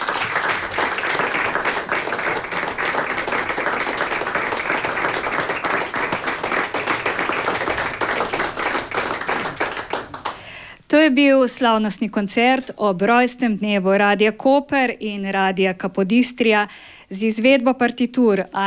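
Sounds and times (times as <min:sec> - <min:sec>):
large audience applause after orchestral concert: 0:00.0 - 0:10.6
speech: 0:11.0 - 0:18.6.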